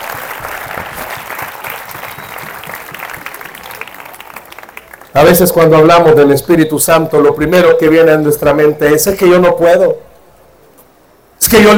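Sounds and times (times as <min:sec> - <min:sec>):
audience applause: 0:00.0 - 0:05.1
speech: 0:05.2 - 0:10.0, 0:11.5 - 0:11.7.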